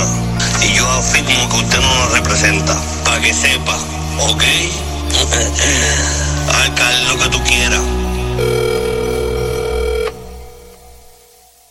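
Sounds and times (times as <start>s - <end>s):
speech: 1.0s - 9.0s
telephone ringing with one steady electronic tone: 8.4s - 10.6s.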